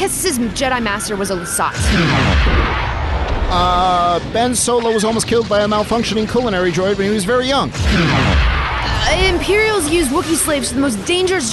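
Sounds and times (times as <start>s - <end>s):
speech: 0.0s - 2.8s, 3.5s - 11.5s
ship's cannon firing: 1.8s - 3.6s, 7.8s - 10.2s.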